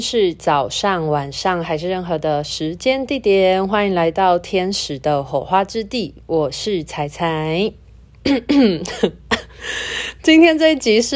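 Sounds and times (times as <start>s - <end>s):
speech: 0.0s - 11.1s
throat clearing with coughs: 8.2s - 9.6s.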